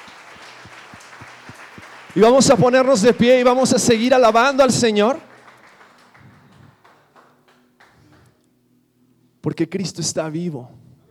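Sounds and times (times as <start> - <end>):
audience applause: 0.0 - 8.4
speech: 2.1 - 5.3, 9.6 - 10.8.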